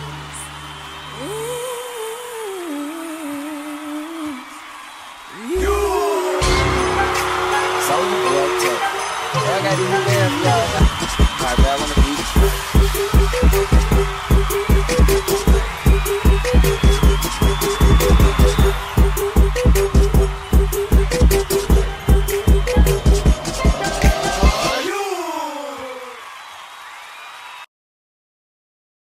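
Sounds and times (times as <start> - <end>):
Christmas music mix: 5.5 - 25.7.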